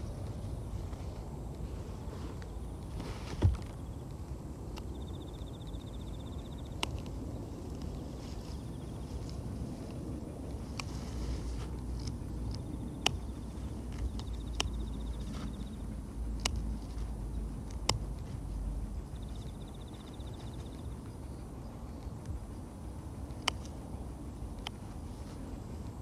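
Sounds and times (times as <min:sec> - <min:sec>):
low rumble: 0:00.0 - 0:26.0
scissors snipping weeds among carrots: 0:11.7 - 0:15.6, 0:16.3 - 0:18.2, 0:23.3 - 0:23.8.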